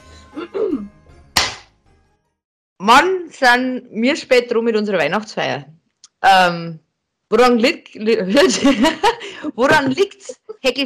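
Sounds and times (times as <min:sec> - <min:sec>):
hand clap: 0:01.4 - 0:01.7
speech: 0:02.9 - 0:10.8
laughter: 0:08.3 - 0:10.6.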